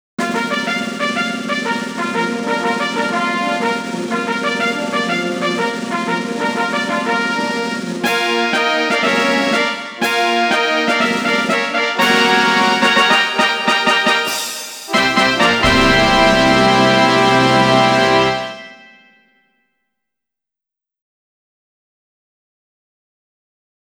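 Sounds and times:
race fanfare: 0.2 - 19.2.

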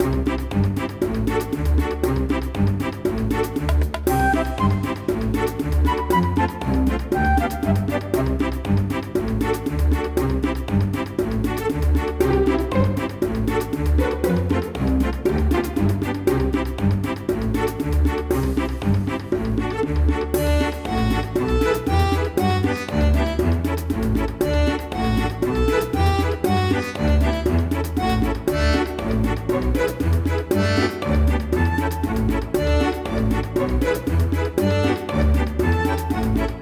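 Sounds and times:
menu background music: 0.0 - 36.5.

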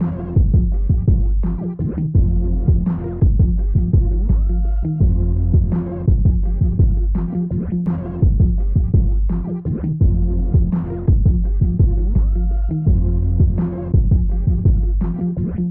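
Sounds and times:
diner park car music: 0.0 - 15.7.

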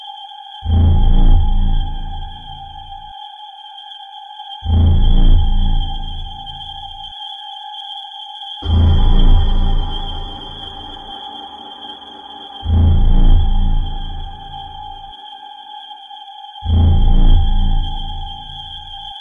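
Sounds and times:
tension music: 0.7 - 3.0, 4.7 - 7.0, 8.6 - 15.2, 16.7 - 19.1.

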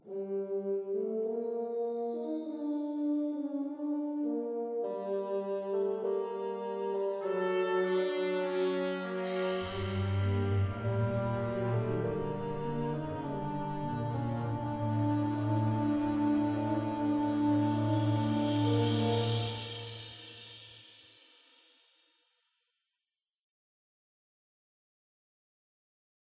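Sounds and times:
soft round melody: 0.0 - 20.6.

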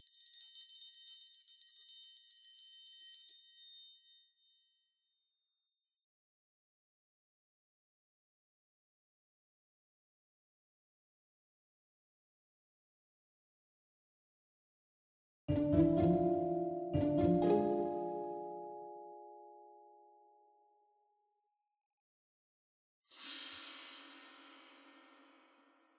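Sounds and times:
pizzicato strings: 15.5 - 18.4.

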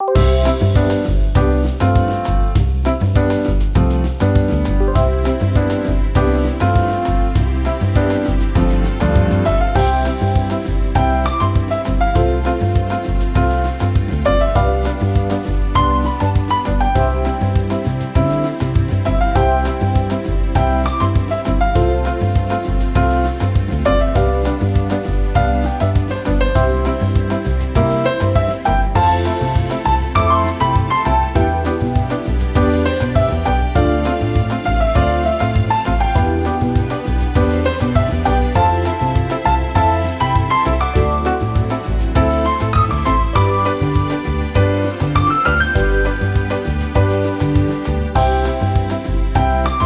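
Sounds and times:
happy background music: 0.0 - 49.8.

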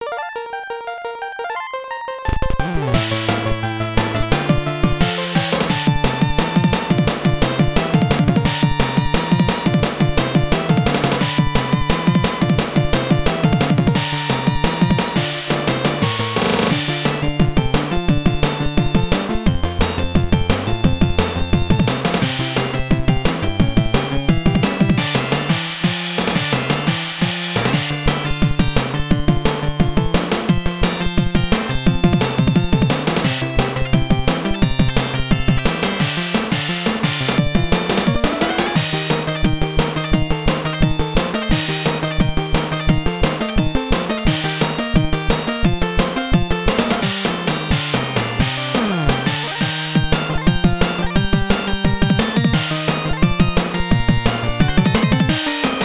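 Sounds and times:
WonderSwan Color background game music: 0.0 - 55.8.

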